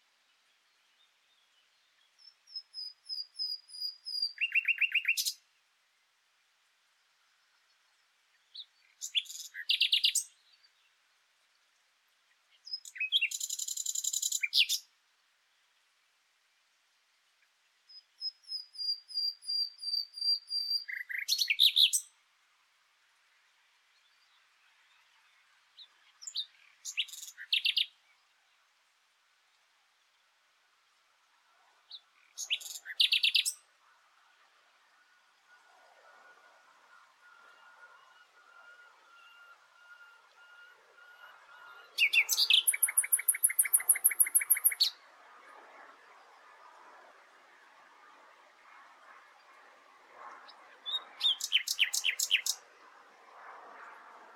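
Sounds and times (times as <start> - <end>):
Luscinia megarhynchos singing: 0.3 - 5.4, 8.4 - 10.9, 12.5 - 14.9, 17.9 - 22.2, 25.8 - 28.2, 31.9 - 33.7, 36.9 - 45.0, 50.8 - 52.6.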